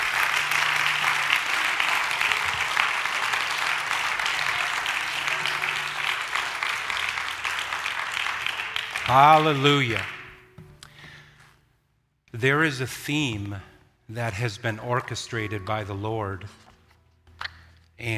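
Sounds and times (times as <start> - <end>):
audience clapping hands: 0.0 - 10.5
speech: 9.1 - 10.2, 12.4 - 16.6, 18.0 - 18.1.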